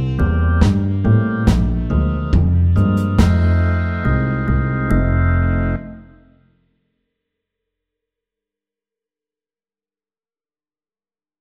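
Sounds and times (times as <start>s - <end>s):
slow walking bass: 0.0s - 6.2s.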